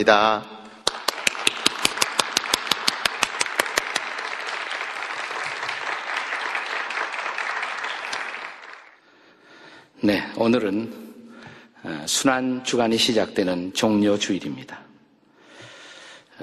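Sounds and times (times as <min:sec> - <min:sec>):
speech: 0:00.0 - 0:00.5, 0:10.0 - 0:11.0, 0:11.8 - 0:14.9
audience applause: 0:00.8 - 0:09.0.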